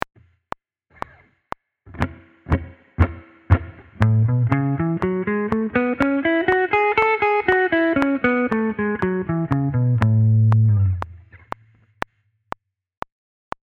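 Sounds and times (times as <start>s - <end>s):
blues music: 2.0s - 11.3s.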